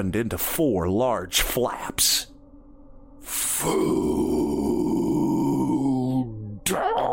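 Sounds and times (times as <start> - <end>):
speech: 0.0 - 2.3, 3.2 - 4.4, 6.7 - 7.1
monster growling: 3.3 - 7.1.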